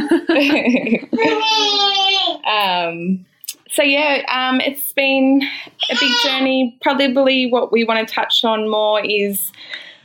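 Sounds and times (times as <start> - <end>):
laughter: 0.0 - 1.5
speech: 0.4 - 9.8
baby babbling and fussing: 1.2 - 2.4.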